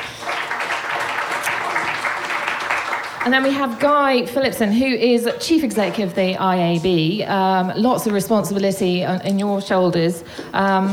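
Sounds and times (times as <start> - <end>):
audience applause: 0.0 - 3.8
speech: 3.2 - 10.9.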